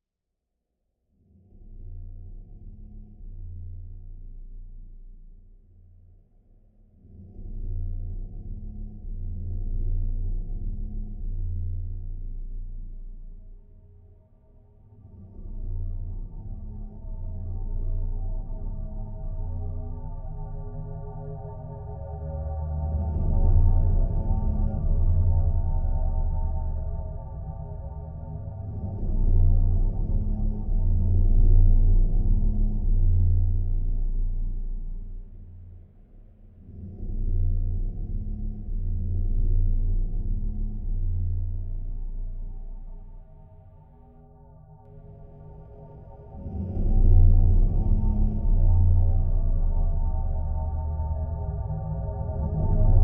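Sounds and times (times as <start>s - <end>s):
post-apocalyptic dark ambient mix: 1.2s - 53.0s.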